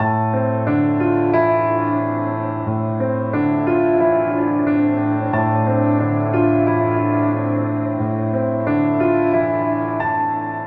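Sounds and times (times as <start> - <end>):
piano: 0.0 - 10.6.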